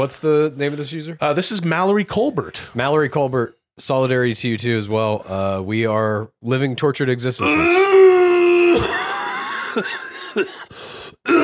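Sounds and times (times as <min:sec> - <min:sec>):
speech: 0:00.0 - 0:08.0, 0:08.8 - 0:09.0, 0:09.8 - 0:10.6
harsh raspy coughing: 0:08.7 - 0:11.4.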